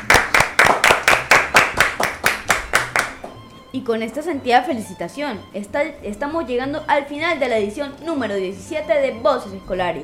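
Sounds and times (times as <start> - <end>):
rhythmic hand clapping in a radio studio: 0.0 - 3.6
speech: 3.7 - 10.0.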